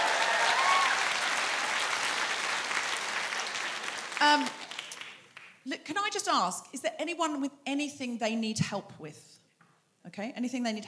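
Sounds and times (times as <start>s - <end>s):
room full of people applauding: 0.0s - 5.5s
speech: 4.3s - 4.6s, 5.9s - 9.4s, 10.1s - 10.8s.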